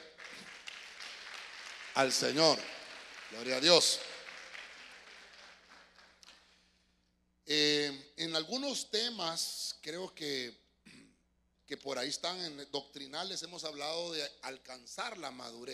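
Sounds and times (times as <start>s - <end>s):
church audience clapping: 0.0s - 6.8s
speech: 2.0s - 4.1s, 7.5s - 10.6s, 11.7s - 15.7s.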